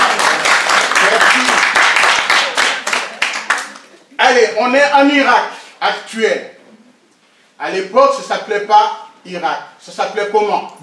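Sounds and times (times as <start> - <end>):
audience applause: 0.0 - 3.9
speech: 4.3 - 6.5, 7.6 - 10.8.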